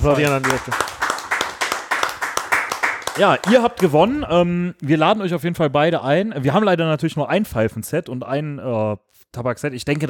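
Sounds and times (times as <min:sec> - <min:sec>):
speech: 0:00.0 - 0:01.0, 0:03.2 - 0:10.0
clapping applause: 0:00.0 - 0:04.1.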